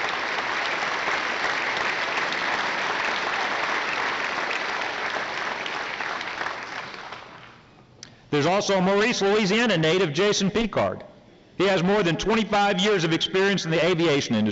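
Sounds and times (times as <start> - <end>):
audience applause: 0.0 - 7.6
speech: 8.3 - 14.5.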